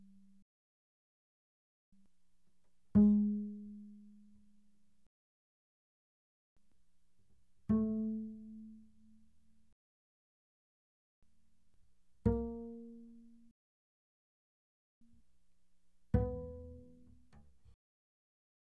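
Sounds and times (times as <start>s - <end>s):
double bass pizzicato fortissimo on the G string: 3.0s - 4.4s, 7.7s - 9.2s, 12.3s - 13.5s, 16.2s - 17.7s.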